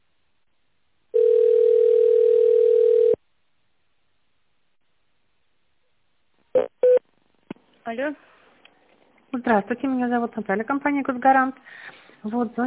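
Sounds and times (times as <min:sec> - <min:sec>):
telephone tone dialing of an extension: 0:01.2 - 0:03.2
speech: 0:07.9 - 0:08.3, 0:09.3 - 0:12.6.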